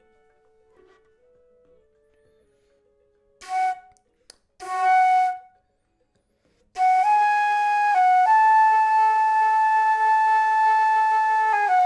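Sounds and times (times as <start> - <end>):
flute: 3.4 - 5.8, 6.8 - 11.8.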